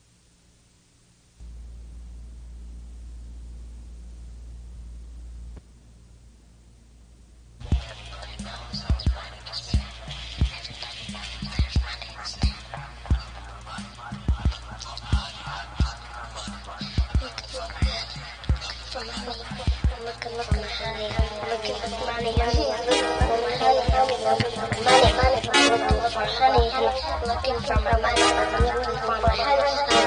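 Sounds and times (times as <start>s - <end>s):
synthesizer: 7.6s - 30.0s.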